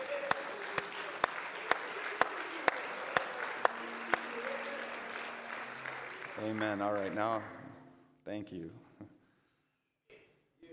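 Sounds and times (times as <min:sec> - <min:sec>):
audience hand clapping: 0:00.0 - 0:07.8
speech: 0:06.4 - 0:07.6, 0:08.2 - 0:08.9.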